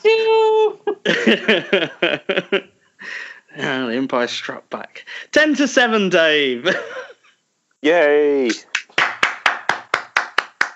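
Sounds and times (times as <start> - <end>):
laughter: 0.9 - 2.7, 6.6 - 7.2
speech: 1.1 - 7.1, 7.8 - 8.7
hand clapping: 8.5 - 10.7.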